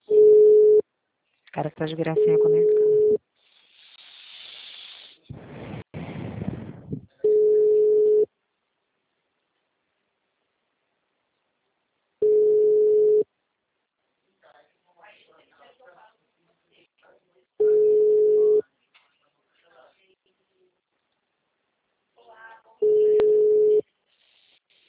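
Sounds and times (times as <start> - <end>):
telephone ringback tones of an outgoing call: 0.1 - 0.8, 2.2 - 3.2, 7.3 - 8.3, 12.2 - 13.2, 17.7 - 18.6, 22.8 - 23.8
speech: 1.6 - 3.2
noisy burst: 3.6 - 7.0.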